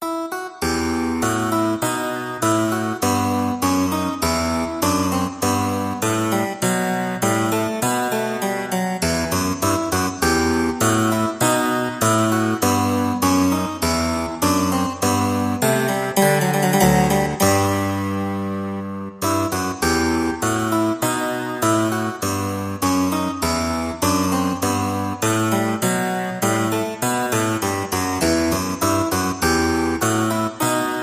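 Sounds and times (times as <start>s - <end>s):
formal classical harpsichord piece: 0.0s - 31.0s.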